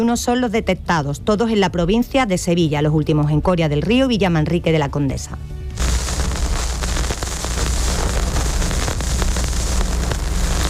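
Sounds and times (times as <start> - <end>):
speech: 0.0 - 5.6
vinyl record crackle as needle is placed: 5.7 - 10.6.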